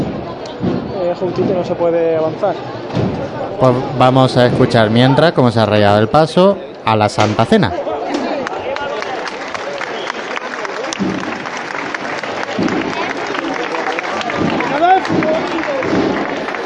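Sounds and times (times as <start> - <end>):
speech: 1.1 - 7.9
crowd applauding a procession float: 8.2 - 16.6.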